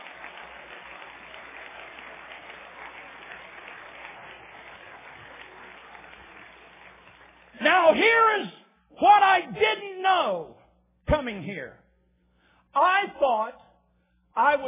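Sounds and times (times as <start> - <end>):
hands clapping: 0.0 - 8.0
speech: 7.6 - 10.6, 11.2 - 11.8, 12.8 - 13.6, 14.4 - 14.6.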